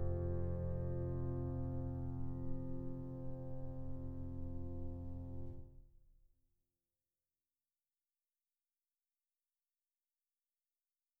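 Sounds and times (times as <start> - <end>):
sleepy piano: 0.0 - 5.7.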